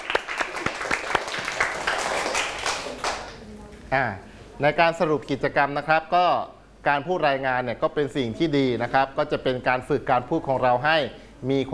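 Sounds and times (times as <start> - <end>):
students clapping for themselves: 0.0 - 3.4
speech: 3.9 - 11.7.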